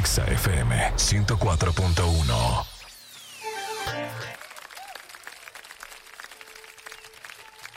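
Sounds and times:
speech: 0.2s - 2.7s
applause: 3.9s - 7.7s.

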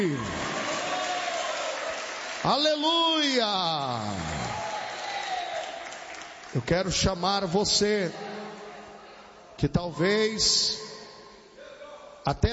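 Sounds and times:
speech: 0.0s - 0.4s, 2.4s - 4.4s, 6.5s - 8.3s, 9.6s - 10.8s, 12.2s - 12.5s
audience applauding: 0.0s - 6.7s.

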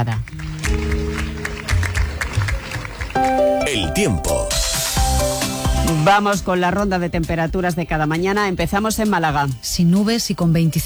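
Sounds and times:
speech: 0.0s - 0.9s, 3.7s - 4.8s, 5.9s - 10.8s
crowd applauding outdoors for a funeral coffin: 0.6s - 5.6s.

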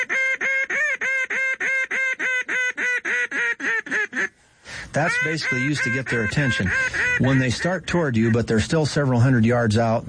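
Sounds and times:
highball duck call blown on a game call: 0.0s - 4.4s, 5.0s - 8.4s
speech: 5.0s - 10.0s.

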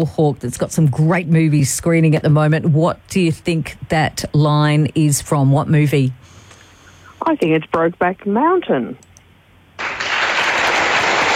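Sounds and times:
speech: 0.0s - 6.3s, 7.2s - 9.1s
applause sound effect for a correct quiz answer: 9.8s - 11.3s.

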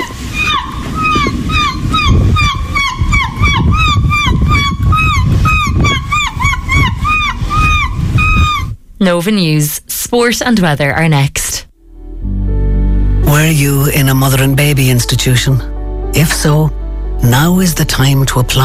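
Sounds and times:
woman imitating seagull calls: 0.0s - 8.7s
speech: 9.0s - 11.7s, 13.3s - 18.6s.

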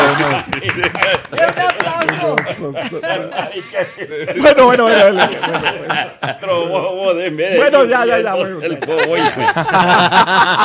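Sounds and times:
audience clapping: 0.0s - 2.8s
laughter: 0.0s - 10.6s
speech: 0.4s - 1.6s, 2.6s - 10.6s.

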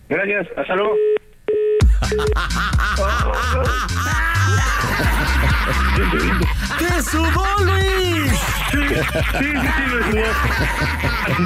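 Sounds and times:
speech: 0.1s - 1.2s, 2.1s - 11.4s
telephone beep pair: 0.9s - 2.3s
laughter: 2.1s - 11.4s.

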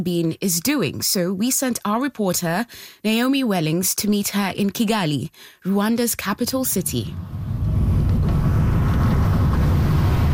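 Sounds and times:
speech: 0.0s - 7.5s
car engine rumbling driving up a steep hill in Kigali, Rwanda: 7.1s - 10.3s.

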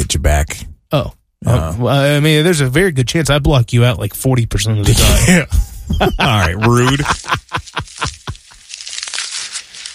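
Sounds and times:
speech: 0.1s - 7.5s
laughter: 5.7s - 8.6s
giraffe chewing: 6.7s - 9.9s.

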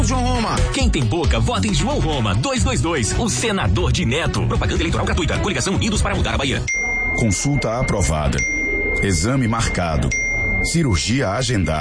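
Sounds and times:
speech: 0.1s - 11.8s
bright bell dings sound effect: 6.7s - 11.8s.

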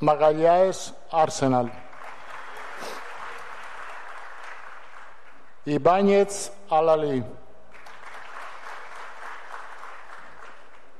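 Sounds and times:
speech: 0.0s - 1.8s, 5.6s - 7.4s
crowd applauding: 1.5s - 5.6s, 7.7s - 10.9s.

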